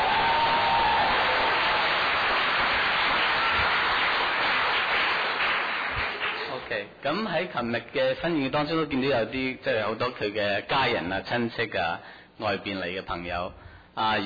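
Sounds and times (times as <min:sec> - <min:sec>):
audience applause: 0:00.0 - 0:06.8
speech: 0:07.0 - 0:14.2.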